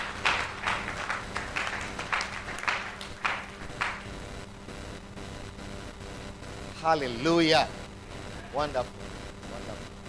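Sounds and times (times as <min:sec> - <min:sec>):
audience clapping in rhythm: 0:00.0 - 0:04.2
speech: 0:06.8 - 0:07.8, 0:08.5 - 0:09.1.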